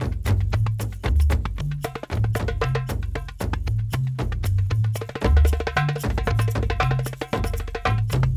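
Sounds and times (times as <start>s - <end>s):
kendang drum: 0.0s - 8.3s.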